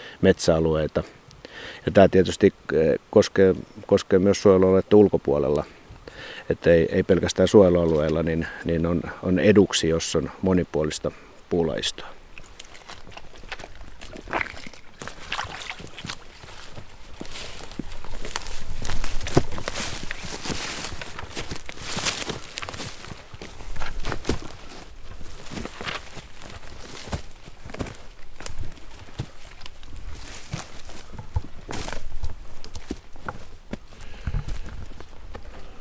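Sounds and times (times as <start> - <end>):
speech: 0.2 - 12.2
footsteps walking up a hilly forest path: 11.1 - 35.7.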